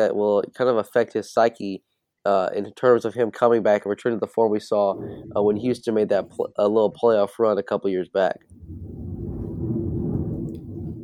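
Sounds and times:
speech: 0.0s - 9.0s
thunder: 4.9s - 5.9s, 8.5s - 11.0s.

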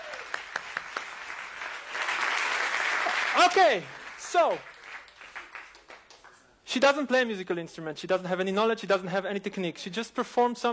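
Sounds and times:
audience applause: 0.0s - 6.3s
speech: 3.4s - 4.7s, 6.8s - 10.7s.

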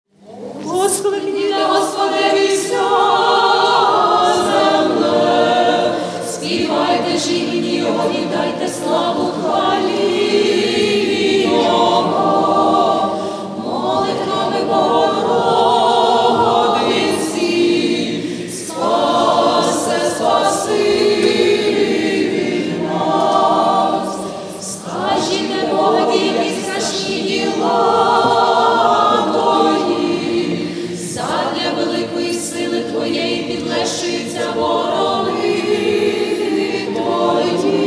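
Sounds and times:
live Ukrainian Greek Catholic chant for meditation and prayer: 0.1s - 37.8s.

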